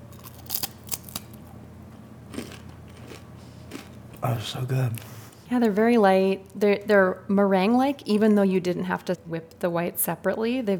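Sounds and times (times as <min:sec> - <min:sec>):
light delicate cookie breaking apart: 0:00.1 - 0:01.4
speech: 0:04.2 - 0:10.7.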